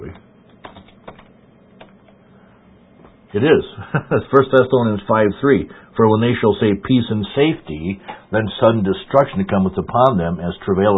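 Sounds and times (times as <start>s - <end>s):
sparse keystrokes on a computer keyboard: 0.1s - 2.0s
speech: 3.3s - 10.9s
laughter: 3.4s - 4.6s.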